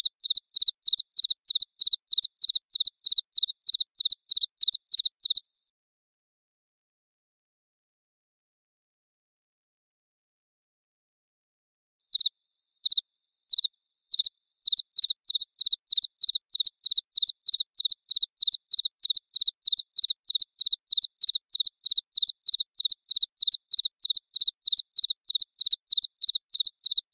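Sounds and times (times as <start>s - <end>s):
cricket chirping: 0.0s - 5.5s, 12.1s - 27.1s.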